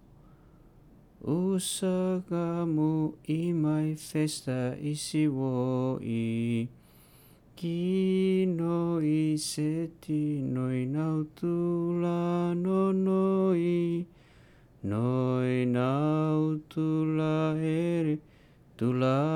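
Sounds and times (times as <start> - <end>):
love song in Makasae: 1.2 - 19.3.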